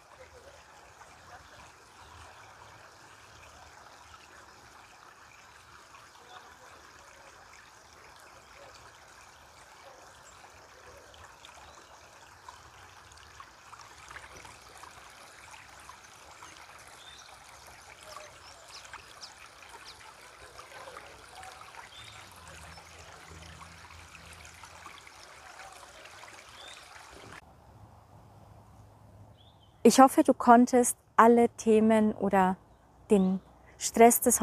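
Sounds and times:
flowing stream water: 0:00.0 - 0:27.5
speech: 0:29.8 - 0:34.4.

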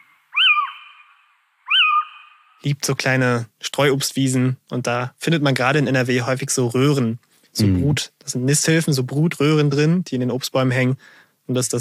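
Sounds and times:
owl calling: 0:00.0 - 0:02.6
speech: 0:02.6 - 0:11.8.

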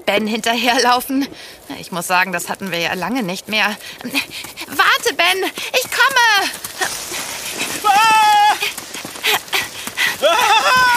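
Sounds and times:
speech: 0:00.1 - 0:07.0
hooves of an antlered creature running behind bushes: 0:00.2 - 0:10.9.

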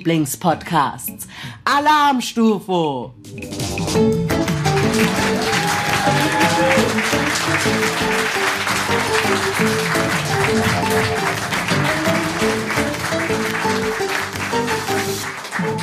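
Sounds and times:
speech: 0:00.0 - 0:04.2, 0:05.0 - 0:11.1
live audience applauding loudly: 0:04.5 - 0:15.8.

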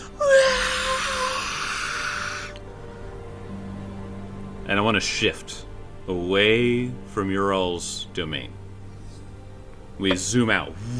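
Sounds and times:
ghostly wail from spectral faces inside magical crystals: 0:00.0 - 0:03.2
speech: 0:04.7 - 0:08.6, 0:10.0 - 0:10.9.

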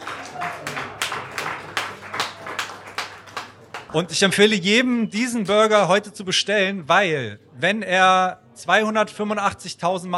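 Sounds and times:
audience clapping: 0:00.0 - 0:04.1
speech: 0:03.9 - 0:10.1.

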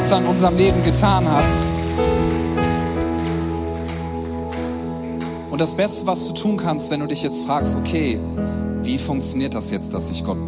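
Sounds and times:
audience applauding: 0:00.0 - 0:06.6
sustained droning keyboard chords: 0:00.0 - 0:10.4
speech: 0:00.1 - 0:02.4, 0:05.5 - 0:10.4.

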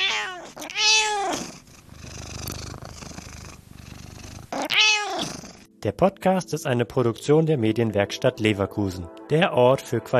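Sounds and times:
cat meowing: 0:00.0 - 0:01.6, 0:04.5 - 0:05.6
cat purring: 0:00.0 - 0:05.7
speech: 0:05.8 - 0:10.1.

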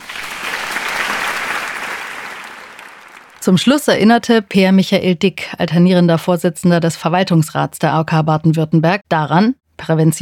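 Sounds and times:
audience applause: 0:00.0 - 0:03.4
speech: 0:03.4 - 0:10.2.

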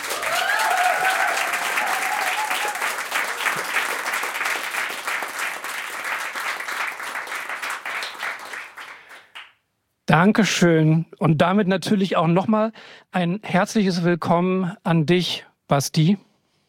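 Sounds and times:
live audience cheers in Berlin: 0:00.0 - 0:04.9
enthusiastic live audience applause in Berlin at a podcast recording: 0:00.0 - 0:09.5
speech: 0:10.2 - 0:16.3.

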